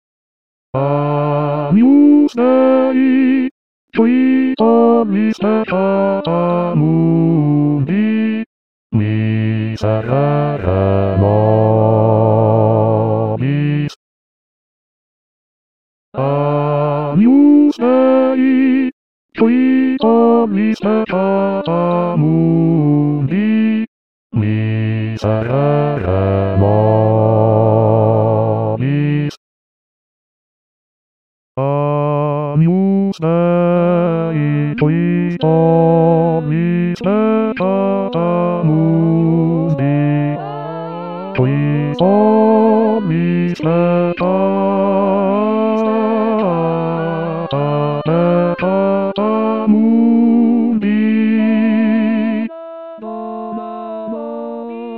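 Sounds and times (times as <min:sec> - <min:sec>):
bass voices singing a short mass: 0:00.8 - 0:03.4, 0:04.0 - 0:13.9, 0:16.2 - 0:23.6, 0:24.4 - 0:29.3, 0:31.6 - 0:54.9.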